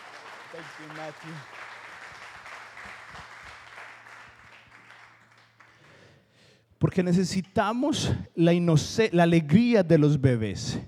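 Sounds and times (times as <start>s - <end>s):
audience applause: 0.0s - 6.1s
speech: 0.5s - 1.6s, 6.8s - 10.8s.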